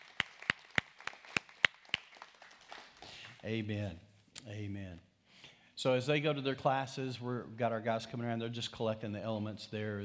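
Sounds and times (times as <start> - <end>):
audience clapping in unison: 0.0 - 3.4
speech: 3.4 - 5.1, 5.8 - 10.0.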